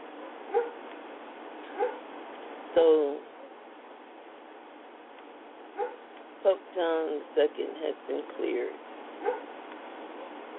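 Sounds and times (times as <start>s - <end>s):
puppies barking: 0.2s - 0.8s, 1.7s - 2.0s, 5.8s - 6.0s, 9.2s - 9.5s
speech: 2.8s - 3.3s, 6.8s - 9.5s.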